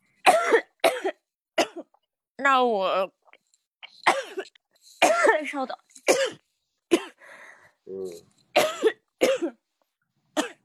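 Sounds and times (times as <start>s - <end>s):
coughing: 0.2s - 2.0s, 4.0s - 7.2s, 8.5s - 9.6s, 10.3s - 10.6s
speech: 2.4s - 3.2s, 5.1s - 6.4s, 7.9s - 8.4s.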